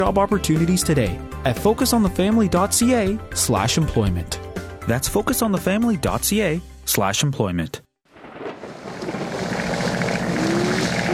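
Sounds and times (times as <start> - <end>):
speech: 0.0 - 7.8
aircraft engine drone in a storm: 8.3 - 11.1.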